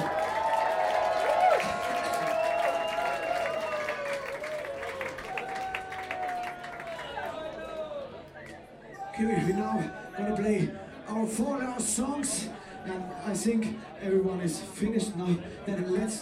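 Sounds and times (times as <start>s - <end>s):
audience applause at a concert: 0.0s - 8.1s
crowd cheering and shouting at a concert: 0.0s - 8.2s, 8.9s - 10.7s, 12.0s - 13.6s
speech: 9.2s - 16.2s.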